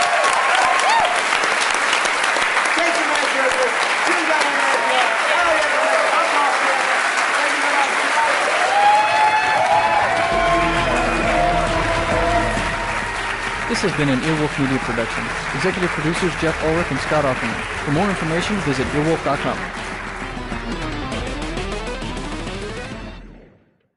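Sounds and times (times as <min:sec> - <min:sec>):
live audience applause and cheers at a comedy show: 0:00.0 - 0:23.0
speech: 0:13.8 - 0:19.9.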